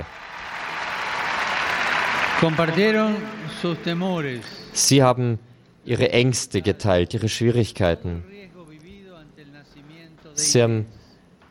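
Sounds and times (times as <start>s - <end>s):
audience applause: 0.0s - 4.4s
speech: 2.4s - 8.3s, 10.4s - 11.0s.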